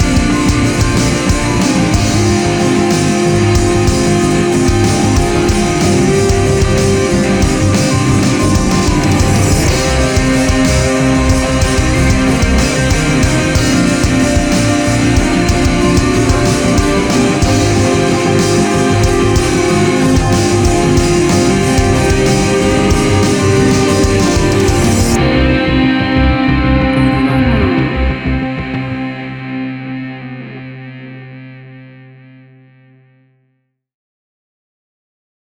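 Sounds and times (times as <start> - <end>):
action hybrid dramatic trailer music: 0.0 - 30.9.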